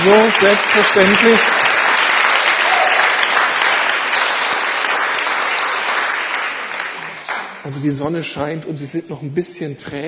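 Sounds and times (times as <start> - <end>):
speech: 0.0 - 1.6, 7.7 - 10.0
audience applause: 0.0 - 7.8.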